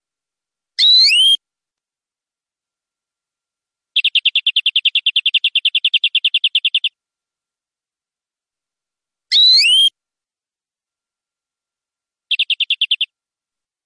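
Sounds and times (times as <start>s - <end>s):
canary singing: 0.8s - 1.4s, 4.0s - 7.0s, 9.3s - 9.9s, 12.3s - 13.2s.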